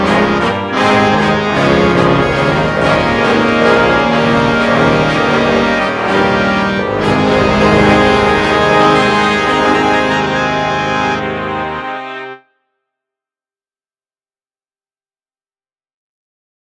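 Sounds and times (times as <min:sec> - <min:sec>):
marching band playing: 0:00.0 - 0:12.4.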